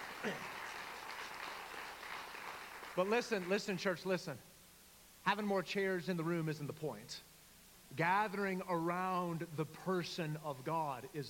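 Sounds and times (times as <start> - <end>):
audience applauding: 0.0 - 3.6
speech: 0.2 - 0.5, 3.0 - 4.5, 5.2 - 7.3, 7.9 - 11.2.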